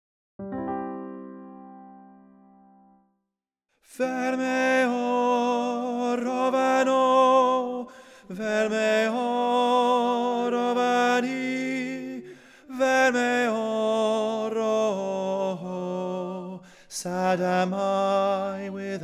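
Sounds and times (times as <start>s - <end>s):
tenor singing: 3.9s - 19.0s.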